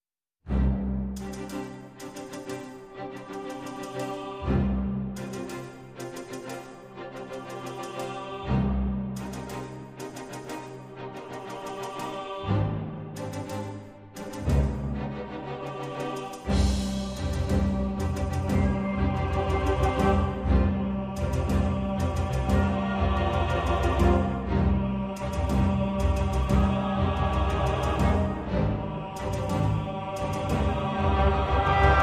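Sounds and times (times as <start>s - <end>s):
orchestra building tension: 0.5s - 32.0s.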